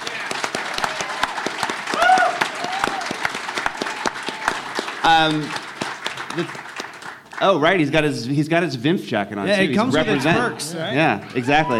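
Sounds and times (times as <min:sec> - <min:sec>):
applause: 0:00.0 - 0:08.2
speech: 0:05.1 - 0:05.6, 0:06.3 - 0:06.6, 0:07.4 - 0:11.7.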